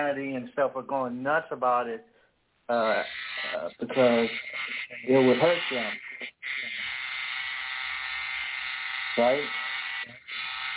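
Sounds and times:
speech: 0.0s - 6.3s, 9.2s - 10.2s
electric shaver buzzing: 3.0s - 10.7s.

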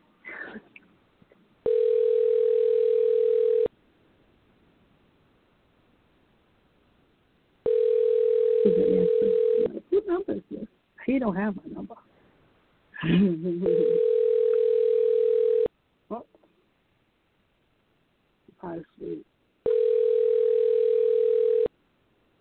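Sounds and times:
phone ringing on outgoing call: 1.6s - 3.7s, 7.6s - 9.7s, 13.6s - 15.7s, 19.6s - 21.7s
speech: 11.2s - 11.7s, 13.1s - 14.1s.

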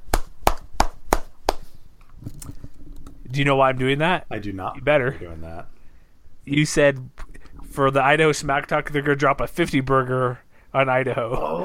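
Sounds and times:
sharp hand claps from a single person: 0.0s - 1.7s
speech: 3.3s - 5.8s, 6.4s - 11.6s.

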